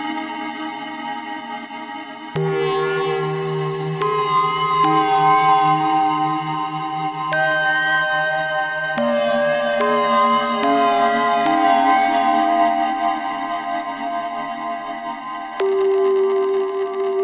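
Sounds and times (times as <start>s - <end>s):
ambient performance on a Korg: 0.0s - 17.2s.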